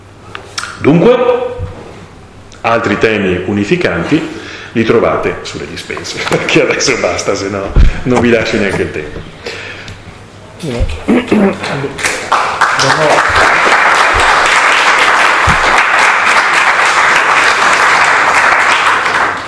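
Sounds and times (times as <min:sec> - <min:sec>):
speech: 0:00.8 - 0:01.5, 0:02.6 - 0:09.6, 0:10.6 - 0:12.1, 0:12.8 - 0:13.5
spontaneous audience applause: 0:12.0 - 0:19.4.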